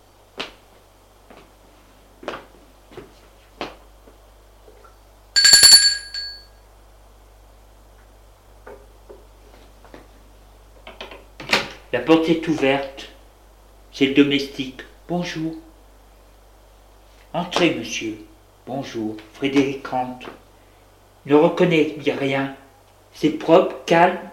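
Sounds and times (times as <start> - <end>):
apartment doorbell ringing: 5.4 - 6.5
speech: 11.9 - 13.1, 14.0 - 15.6, 17.4 - 20.4, 21.2 - 24.3.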